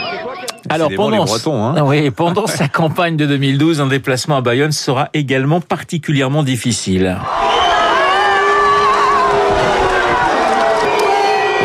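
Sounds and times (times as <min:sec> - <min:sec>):
crowd booing and jeering: 0:00.0 - 0:01.4, 0:07.2 - 0:11.6
speech: 0:00.7 - 0:07.7
laughter: 0:02.2 - 0:03.1.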